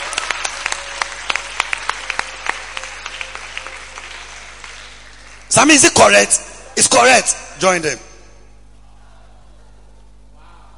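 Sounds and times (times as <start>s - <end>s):
small audience clapping: 0.0s - 6.3s
speech: 5.5s - 8.1s.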